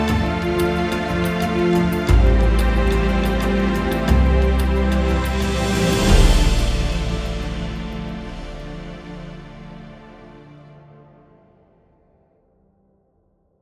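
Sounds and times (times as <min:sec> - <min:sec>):
instrumental music without choir: 0:00.0 - 0:10.6.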